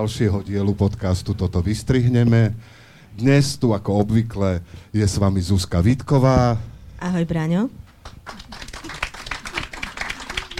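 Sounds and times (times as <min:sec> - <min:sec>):
speech: 0:00.0 - 0:08.4
clapping: 0:08.0 - 0:10.5.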